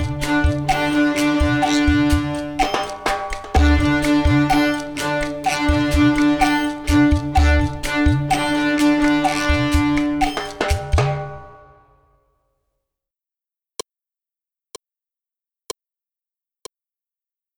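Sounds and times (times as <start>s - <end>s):
bow beat: 0.0s - 11.5s.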